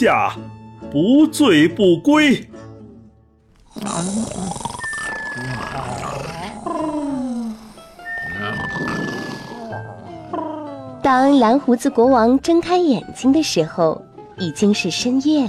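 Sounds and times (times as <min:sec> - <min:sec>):
speech: 0:00.0 - 0:02.7, 0:03.8 - 0:04.5, 0:11.1 - 0:15.4
several people snoring: 0:02.8 - 0:11.0.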